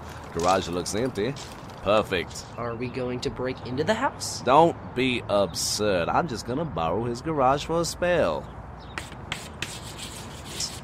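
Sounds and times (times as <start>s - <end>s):
speech: 0.4s - 8.6s
scratchy rubbing strokes across a hard surface: 9.0s - 10.8s.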